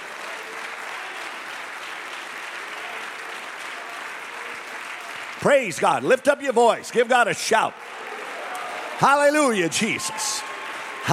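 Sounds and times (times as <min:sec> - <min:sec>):
audience clapping hands: 0:00.0 - 0:11.1
speech: 0:05.4 - 0:08.2, 0:09.0 - 0:11.1.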